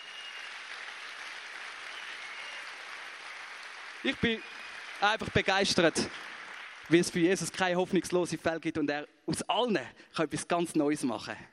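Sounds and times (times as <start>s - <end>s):
audience applause: 0.0s - 7.4s
speech: 4.0s - 6.3s, 6.9s - 11.5s.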